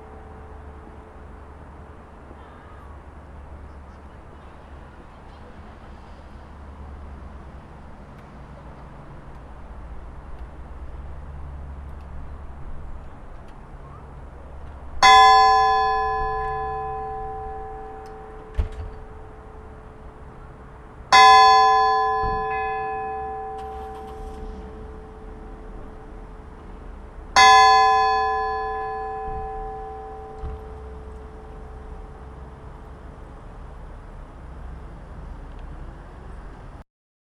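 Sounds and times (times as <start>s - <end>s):
church bells of Laugarneskirkja: 0.0s - 5.4s, 14.5s - 33.4s.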